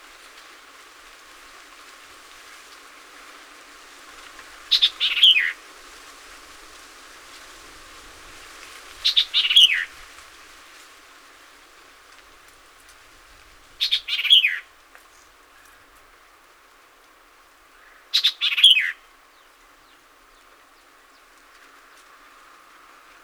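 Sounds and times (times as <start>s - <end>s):
White-eyed Vireo singing: 4.7s - 5.6s, 13.8s - 14.6s, 17.8s - 21.4s.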